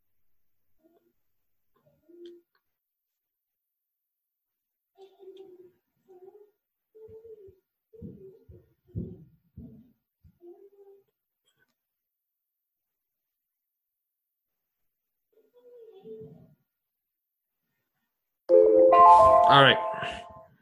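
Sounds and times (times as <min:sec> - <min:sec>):
countdown timer sound: 0:18.5 - 0:20.4
speech: 0:19.5 - 0:20.2.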